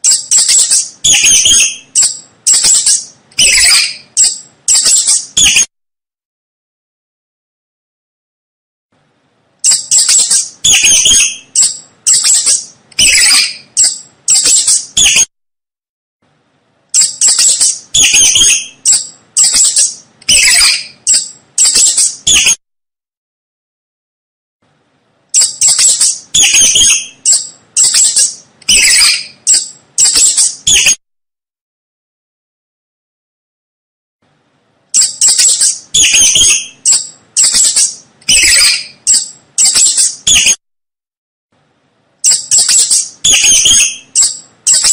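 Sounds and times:
mouse squeaking: 0.0 - 5.7, 9.6 - 15.3, 16.9 - 22.6, 25.3 - 31.0, 34.9 - 40.6, 42.2 - 44.9.

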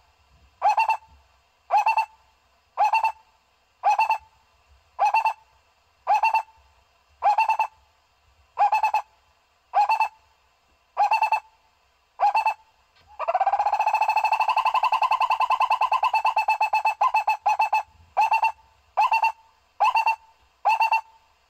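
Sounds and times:
owl hooting: 0.6 - 2.2, 2.8 - 4.3, 5.0 - 6.6, 7.2 - 7.8, 8.6 - 9.1, 9.7 - 10.2, 11.0 - 11.5, 12.2 - 21.4.

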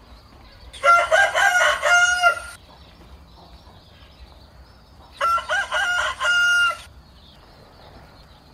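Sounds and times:
rooster crowing: 0.8 - 2.6, 5.2 - 6.9.

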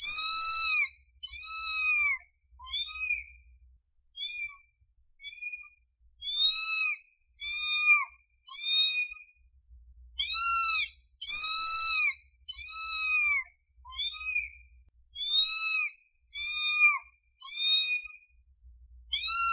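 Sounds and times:
domestic cat meowing: 0.0 - 3.3, 4.2 - 4.6, 6.2 - 9.2, 10.2 - 14.6, 15.2 - 18.2, 19.1 - 19.5.

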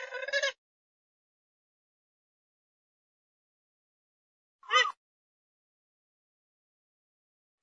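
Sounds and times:
grey-headed swamphen calls: 4.7 - 5.0.

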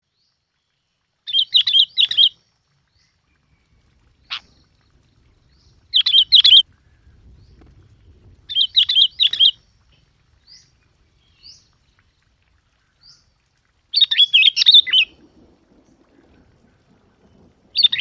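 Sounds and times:
Yellow-vented bulbul bubbly chirping song: 0.0 - 17.9.

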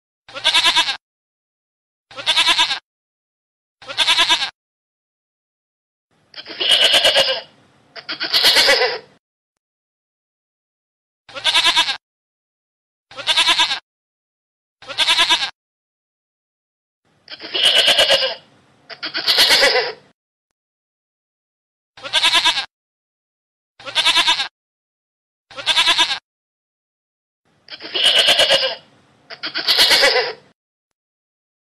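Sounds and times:
goat bleating: 0.3 - 1.0, 2.1 - 2.8, 3.8 - 4.6, 6.4 - 9.1, 11.3 - 12.0, 13.1 - 13.8, 14.8 - 15.6, 17.3 - 20.0, 22.0 - 22.7, 23.8 - 24.5, 25.5 - 26.2, 27.7 - 30.5.

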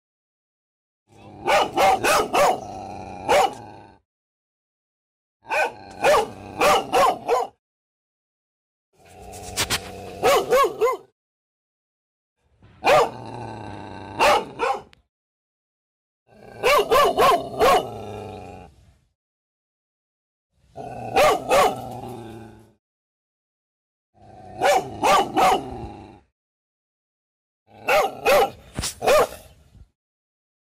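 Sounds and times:
dog barking: 1.4 - 2.7, 3.3 - 3.6, 5.5 - 7.6, 10.2 - 11.1, 12.8 - 13.2, 14.2 - 15.0, 16.6 - 18.0, 21.1 - 21.8, 24.6 - 25.8, 27.8 - 29.4.

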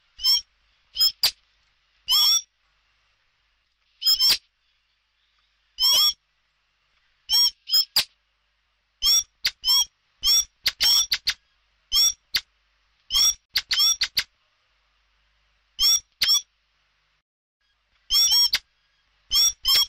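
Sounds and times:
common blackbird squeaking calls: 0.2 - 1.4, 2.1 - 2.5, 4.0 - 6.2, 7.3 - 8.0, 9.0 - 12.4, 13.1 - 14.3, 15.8 - 16.4, 18.1 - 19.8.

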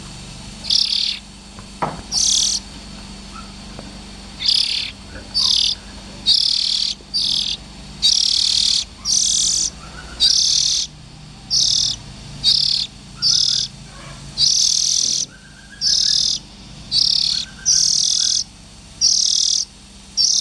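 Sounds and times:
Oriental magpie-robin fledglings harsh rasping hisses: 0.5 - 20.3.

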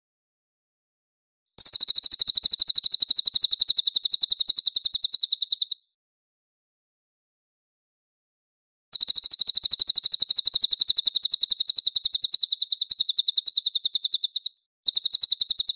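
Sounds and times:
folk song: 1.6 - 5.8, 9.0 - 15.7.

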